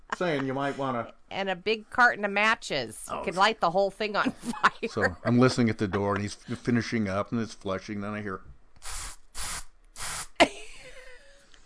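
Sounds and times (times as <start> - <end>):
speech: 0.2 - 9.0
air freshener aerosol spray: 8.8 - 10.4.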